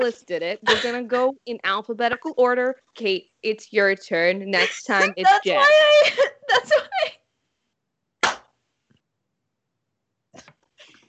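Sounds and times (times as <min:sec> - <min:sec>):
speech: 0:00.0 - 0:07.2
hand clap: 0:08.2 - 0:08.5.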